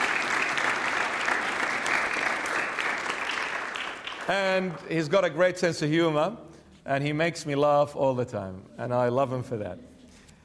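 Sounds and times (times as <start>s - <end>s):
audience applause: 0.0s - 5.1s
speech: 4.3s - 9.9s.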